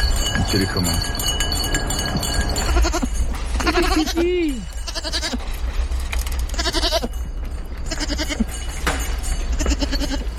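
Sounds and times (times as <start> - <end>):
steady outdoor rumble: 0.0 - 10.3
speech: 0.5 - 1.2, 3.7 - 5.4
goats bleating: 2.6 - 5.5, 6.5 - 7.2, 7.8 - 8.5, 9.5 - 10.3.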